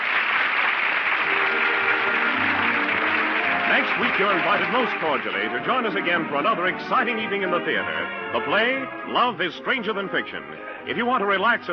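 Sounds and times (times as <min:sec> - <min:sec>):
theater audience applause: 0:00.0 - 0:07.3
speech: 0:04.0 - 0:11.7.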